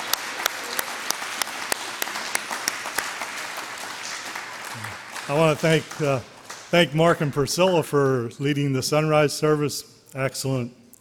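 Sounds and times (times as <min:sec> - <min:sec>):
audience applause: 0:00.0 - 0:08.1
speech: 0:05.3 - 0:10.8.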